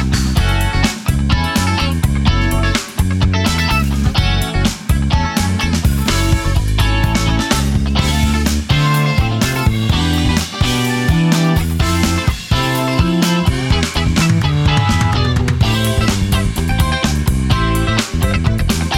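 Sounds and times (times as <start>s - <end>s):
prepared electric guitar rhythm playing: 0.0s - 18.9s.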